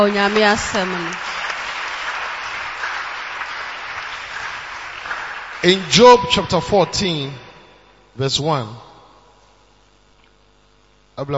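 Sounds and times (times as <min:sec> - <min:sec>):
speech: 0:00.0 - 0:01.3, 0:05.6 - 0:07.4, 0:08.2 - 0:08.9, 0:11.2 - 0:11.3
audience clapping: 0:00.0 - 0:06.8.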